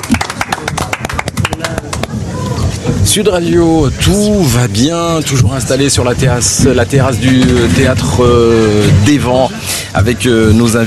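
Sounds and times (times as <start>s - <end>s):
small group applauding in studio: 0.0s - 2.4s
speech: 3.1s - 10.8s.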